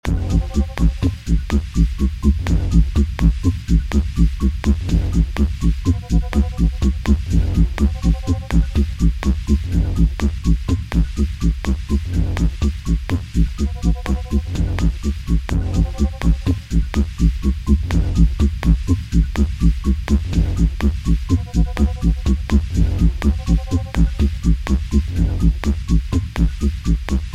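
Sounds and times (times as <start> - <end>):
space music loops: 0.1 - 27.3.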